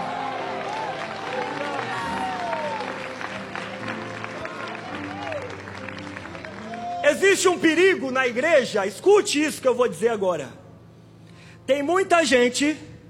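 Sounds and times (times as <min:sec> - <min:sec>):
crowd applauding: 0:00.0 - 0:08.4
speech: 0:07.1 - 0:10.6, 0:11.7 - 0:12.9.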